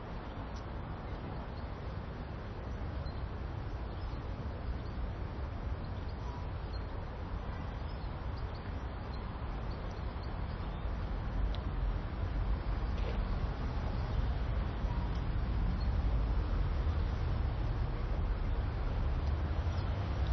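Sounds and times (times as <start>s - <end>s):
road traffic noise: 0.0s - 20.3s
cars passing: 10.4s - 20.3s.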